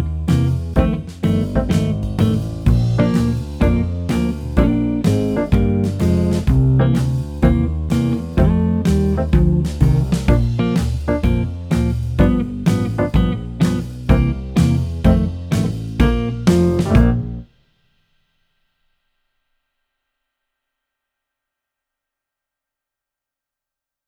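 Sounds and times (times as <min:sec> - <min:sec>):
alto part: 0:00.0 - 0:17.5.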